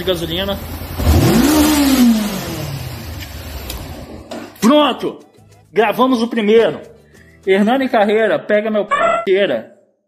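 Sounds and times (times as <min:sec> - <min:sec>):
speech: 0:00.0 - 0:02.2, 0:04.6 - 0:09.7
V8 car engine revving: 0:00.5 - 0:04.3.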